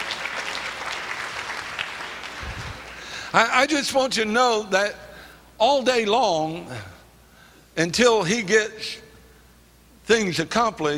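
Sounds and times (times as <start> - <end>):
audience applause: 0.0 - 3.3
speech: 3.3 - 5.0, 5.6 - 6.9, 7.8 - 9.0, 10.1 - 10.9.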